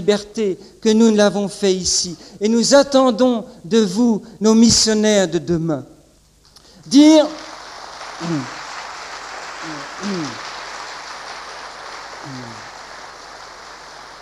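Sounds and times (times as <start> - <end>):
speech: 0.0 - 5.9, 6.9 - 7.5, 8.2 - 8.6, 9.6 - 10.4
crowd applause: 7.2 - 14.2.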